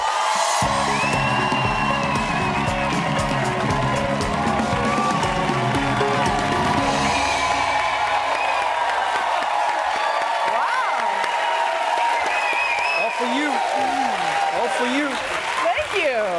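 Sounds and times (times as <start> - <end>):
music: 0.0 - 10.3
audience whoops and cheers: 0.0 - 16.0
talk-show studio audience standing ovation applause: 0.0 - 16.3.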